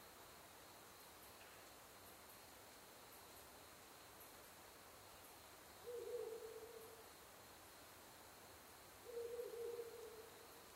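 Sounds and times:
constant soft hiss: 0.0 - 10.7
Ural Owl hooting: 5.8 - 6.9, 9.1 - 10.3
faint high ticks: 9.9 - 10.2.

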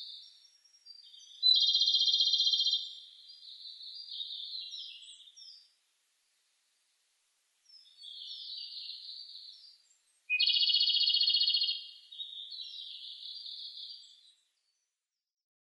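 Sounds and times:
Japanese robin calling: 0.0 - 5.7, 7.7 - 14.4.

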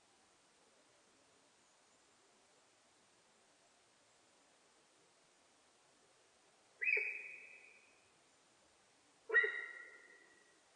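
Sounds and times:
sika deer whistle calls: 9.3 - 10.1.

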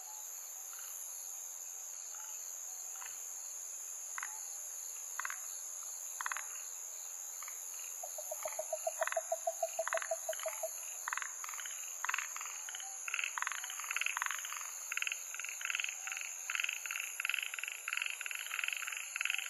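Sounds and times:
Yaeyama harabuti gaeru frog calling: 8.0 - 19.4.

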